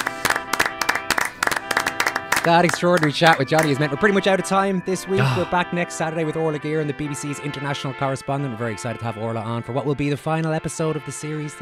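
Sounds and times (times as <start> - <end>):
small group applauding: 0.0 - 3.9
speech: 2.4 - 11.6.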